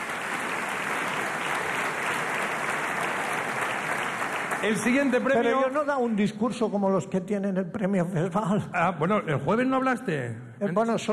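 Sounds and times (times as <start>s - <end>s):
crowd applause: 0.0s - 5.8s
speech: 4.6s - 11.1s.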